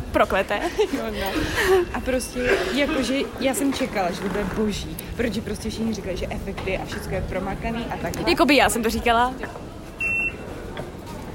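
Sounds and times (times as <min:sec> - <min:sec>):
murmur: 0:00.0 - 0:11.3
speech: 0:00.2 - 0:09.7
laughter: 0:00.5 - 0:03.2
Oyster card reader beep at metro gate: 0:10.0 - 0:10.5.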